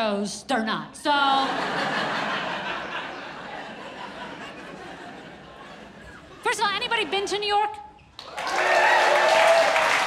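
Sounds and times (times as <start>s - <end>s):
speech: 0.0s - 2.4s, 7.0s - 7.8s
laughter: 1.3s - 7.5s
audience clapping: 8.2s - 10.0s.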